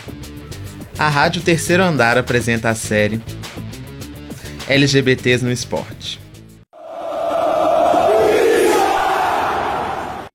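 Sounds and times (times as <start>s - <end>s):
speech: 1.0s - 3.4s, 4.7s - 6.2s
football stadium crowd chanting insults: 6.8s - 10.3s.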